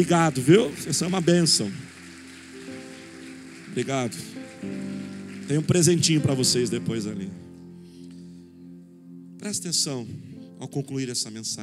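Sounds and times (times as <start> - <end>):
speech: 0.0 - 2.0, 3.7 - 4.9, 5.5 - 7.5, 9.4 - 11.6
audience applauding: 0.0 - 7.4.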